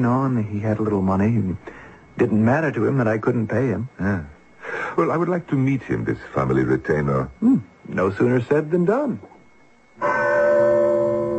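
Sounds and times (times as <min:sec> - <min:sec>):
speech: 0:00.0 - 0:09.3
bell struck to summon servants: 0:10.0 - 0:11.3.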